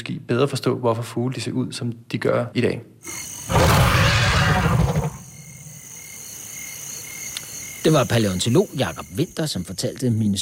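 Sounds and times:
speech: 0.0s - 3.9s, 7.8s - 10.4s
dinosaur roar sound effect: 3.5s - 5.3s.

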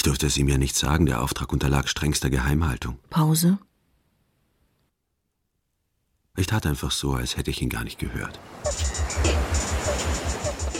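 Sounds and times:
speech: 0.0s - 3.7s, 6.4s - 9.4s
ocean waves: 8.2s - 10.7s.

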